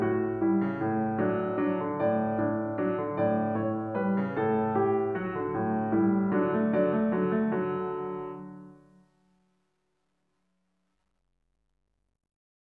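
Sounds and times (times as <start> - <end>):
unknown Irish song arranged for piano: 0.0 - 9.1.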